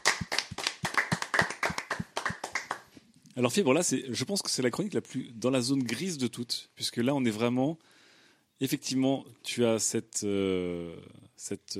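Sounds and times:
audience clapping: 0:00.0 - 0:02.9
speech: 0:03.4 - 0:08.0, 0:08.6 - 0:11.7.

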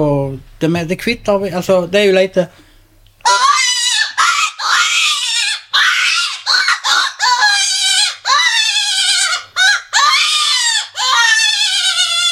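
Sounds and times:
speech: 0:00.0 - 0:02.6
hare predator call imitating rabbit distress scream: 0:03.2 - 0:12.3.

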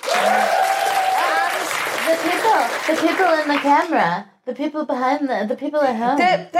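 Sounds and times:
audience applause: 0:00.0 - 0:03.9
speech: 0:02.2 - 0:06.5.

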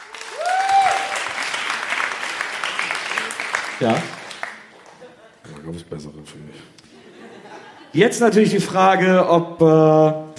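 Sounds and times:
audience applause: 0:00.0 - 0:05.3
speech: 0:03.8 - 0:04.2, 0:05.7 - 0:06.8, 0:07.9 - 0:10.2
laughter: 0:04.7 - 0:05.6, 0:06.8 - 0:08.2.

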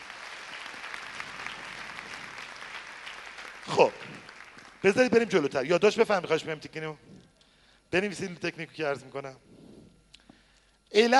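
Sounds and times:
seminar audience clapping: 0:00.0 - 0:05.6
speech: 0:04.8 - 0:07.1, 0:07.9 - 0:09.5, 0:10.9 - 0:11.1.

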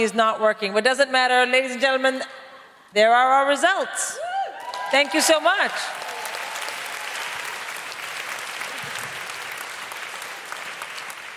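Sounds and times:
speech: 0:00.0 - 0:04.3, 0:04.9 - 0:06.0
audience applause: 0:04.6 - 0:11.3.

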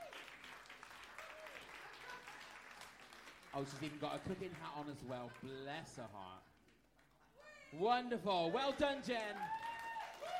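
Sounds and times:
crowd applause: 0:00.0 - 0:05.9, 0:08.5 - 0:10.3
speech: 0:03.6 - 0:06.5, 0:07.7 - 0:09.6.

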